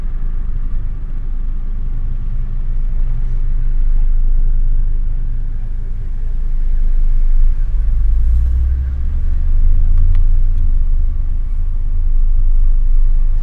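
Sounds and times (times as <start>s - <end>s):
city traffic roar: 0.0s - 13.4s.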